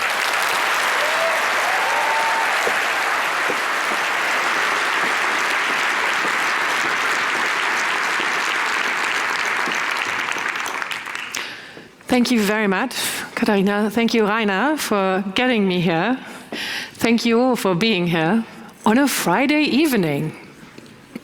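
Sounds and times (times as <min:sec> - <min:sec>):
audience applause welcoming a speaker: 0:00.0 - 0:11.5
speech: 0:12.2 - 0:20.4.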